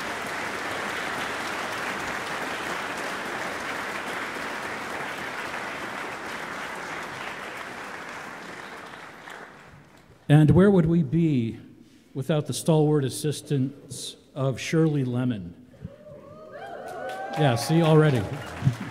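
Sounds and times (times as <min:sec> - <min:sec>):
audience round of applause: 0:00.0 - 0:10.2, 0:16.3 - 0:18.8
speech: 0:10.3 - 0:15.6, 0:17.4 - 0:18.8.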